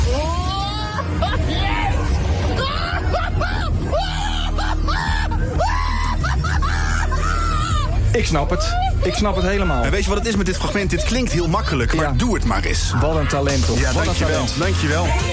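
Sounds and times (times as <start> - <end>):
people screaming on a fairground ride: 0.0 - 15.3
laughter: 0.7 - 15.3
speech: 8.3 - 15.3.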